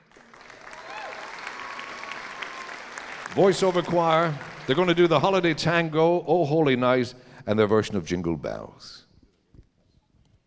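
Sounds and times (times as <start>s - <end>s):
audience applause: 0.0s - 5.8s
speech: 3.4s - 9.0s.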